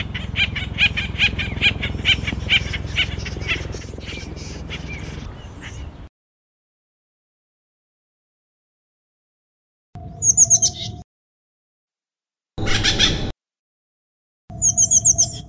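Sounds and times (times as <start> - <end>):
Acorn woodpecker calling in harsh repeated notes: 0.0 - 6.0, 10.1 - 11.0, 12.6 - 13.3, 14.5 - 15.4.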